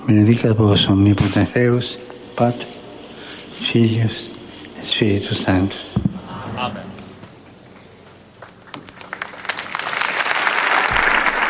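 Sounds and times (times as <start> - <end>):
speech: 0.1 - 2.8, 3.6 - 5.9, 6.6 - 6.9
audience applause: 8.4 - 11.4.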